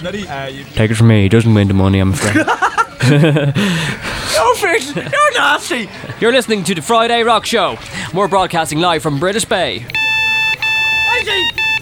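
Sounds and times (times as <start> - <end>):
speech: 0.0 - 10.0
laughter: 2.2 - 4.0
telephone ringing: 9.9 - 11.7.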